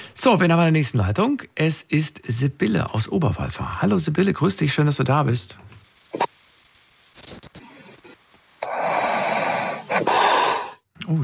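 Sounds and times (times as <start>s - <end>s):
speech: 0.2s - 6.2s, 11.1s - 11.2s
short snorting breaths over a phone line: 8.6s - 10.8s.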